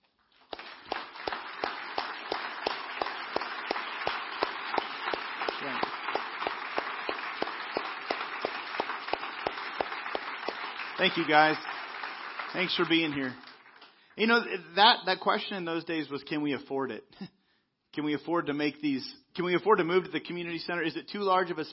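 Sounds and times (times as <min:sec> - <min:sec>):
crowd applauding: 0:00.0 - 0:14.5
speech: 0:11.0 - 0:11.7, 0:12.6 - 0:13.4, 0:14.2 - 0:17.4, 0:18.0 - 0:21.7.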